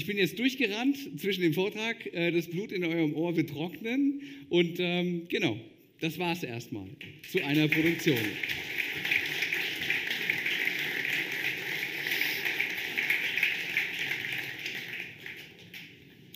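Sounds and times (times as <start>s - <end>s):
speech: 0.0s - 8.8s
audience applause: 7.2s - 16.1s.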